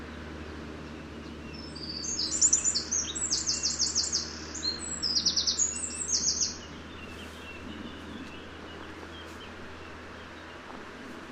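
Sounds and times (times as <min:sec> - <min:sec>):
Eurasian wren trilling song: 0:00.0 - 0:10.6
low hum: 0:00.0 - 0:11.3.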